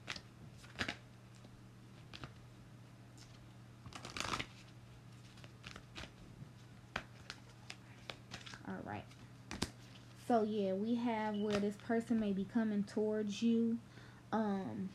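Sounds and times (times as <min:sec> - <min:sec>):
tarot cards being handled from the deck during a reading: 0:00.0 - 0:02.4, 0:03.2 - 0:10.3
speech: 0:08.8 - 0:09.2, 0:10.3 - 0:14.9.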